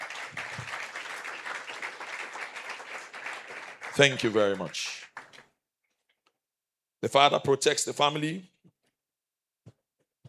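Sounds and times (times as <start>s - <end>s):
crowd applause: 0.0s - 5.4s
speech: 4.0s - 5.0s, 7.0s - 8.5s.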